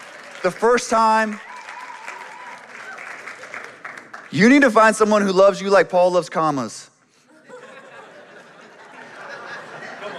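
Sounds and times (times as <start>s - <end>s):
audience applause: 0.0s - 4.7s
speech: 0.4s - 1.5s, 4.3s - 6.8s
laughter: 7.2s - 10.1s.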